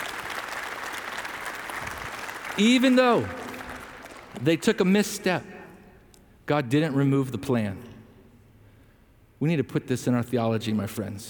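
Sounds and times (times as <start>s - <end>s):
audience clapping hands: 0.0s - 5.1s
speech: 2.6s - 3.4s, 4.4s - 5.5s, 6.5s - 7.9s, 9.4s - 11.2s.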